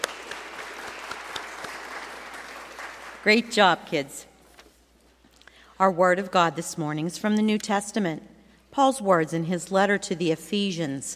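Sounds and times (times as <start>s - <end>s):
applause: 0.0s - 3.6s
speech: 3.2s - 4.3s, 5.8s - 11.1s.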